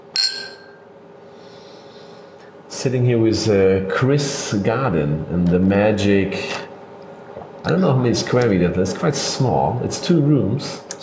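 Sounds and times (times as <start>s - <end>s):
glasses clinking in a toast: 0.1s - 0.8s
speech: 2.7s - 6.7s, 7.6s - 10.8s.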